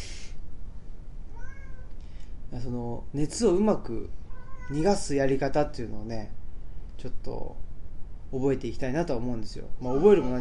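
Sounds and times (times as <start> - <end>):
hissy burst of noise: 0.0 - 0.4
cat meowing: 1.3 - 1.9, 4.3 - 5.0, 9.8 - 10.3
speech: 2.5 - 6.4, 7.0 - 7.6, 8.3 - 10.3.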